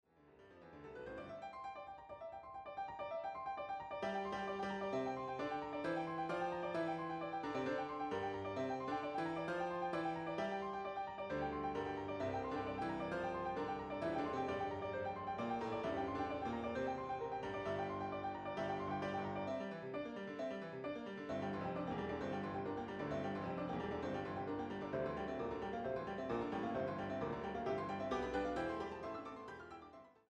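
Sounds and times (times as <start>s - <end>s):
piano four hands: 0.6s - 30.0s.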